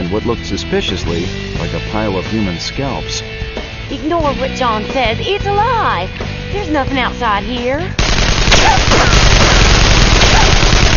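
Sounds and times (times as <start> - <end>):
speech: 0.1 - 9.2
gunfire barrage from the blockhouse: 8.0 - 10.9.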